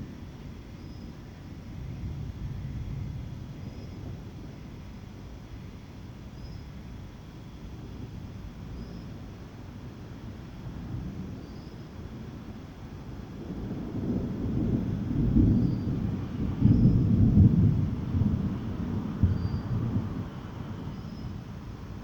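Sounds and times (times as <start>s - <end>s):
thunder in the evening in Douala Cameroon: 1.8s - 4.6s, 10.3s - 22.0s.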